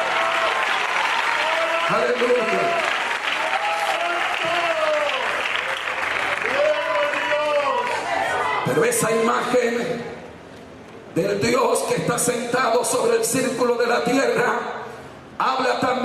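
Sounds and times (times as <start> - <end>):
audience applauding loudly: 0.0 - 8.8
speech: 1.9 - 3.0, 8.8 - 10.2, 11.2 - 14.8, 15.4 - 16.0.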